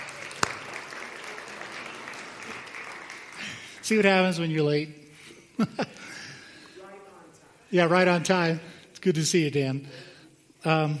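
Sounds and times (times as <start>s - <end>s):
audience applause: 0.0s - 4.2s
speech: 3.9s - 5.0s, 5.6s - 6.1s, 7.7s - 10.9s.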